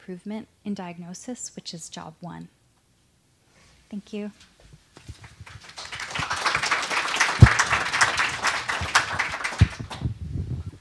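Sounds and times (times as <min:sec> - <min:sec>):
speech: 0:00.1 - 0:02.6, 0:03.9 - 0:05.3
audience applause: 0:05.0 - 0:10.1.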